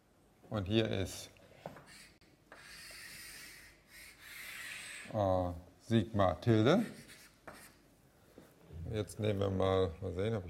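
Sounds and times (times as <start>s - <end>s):
speech: 0.5s - 1.4s, 5.1s - 7.0s, 8.9s - 10.4s
writing on a board during a lecture: 1.7s - 5.1s, 6.8s - 7.8s.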